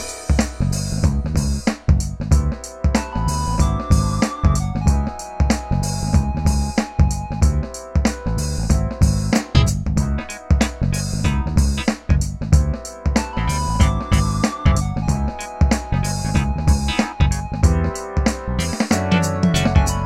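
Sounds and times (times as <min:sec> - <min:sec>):
acid jazz music: 0:00.0 - 0:20.0.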